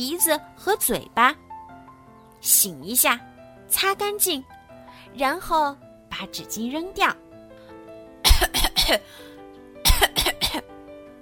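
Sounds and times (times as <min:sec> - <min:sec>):
speech: 0:00.0 - 0:01.4, 0:02.4 - 0:07.2, 0:08.4 - 0:09.3
coughing: 0:08.2 - 0:09.1, 0:09.8 - 0:10.7.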